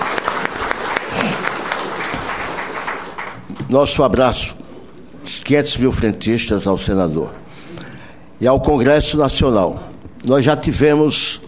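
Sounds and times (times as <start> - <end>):
audience applause: 0.0 - 3.6
speech: 3.7 - 4.6, 5.2 - 7.4, 8.4 - 11.4.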